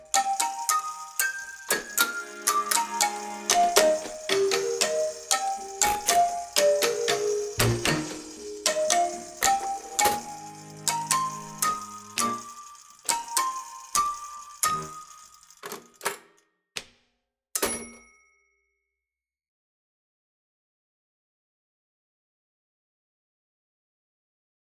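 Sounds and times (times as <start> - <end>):
typewriter tango: 0.0 - 17.0.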